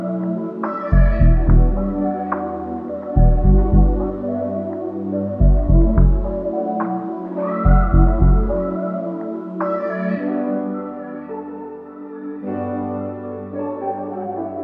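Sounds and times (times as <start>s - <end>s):
107 bpm B minor RnB melody: 0.0s - 11.7s.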